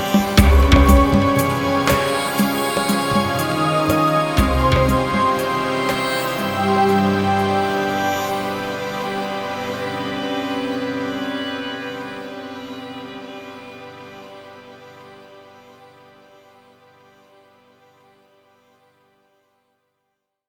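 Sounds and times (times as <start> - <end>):
folk music: 0.0 - 14.4.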